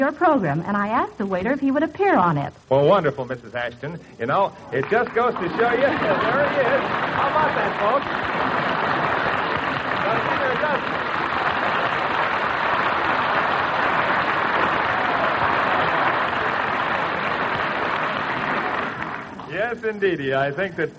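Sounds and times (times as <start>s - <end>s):
speech: 0.0s - 8.7s, 19.7s - 20.9s
audience applause: 4.3s - 20.8s
faint crowd murmur: 4.6s - 19.5s.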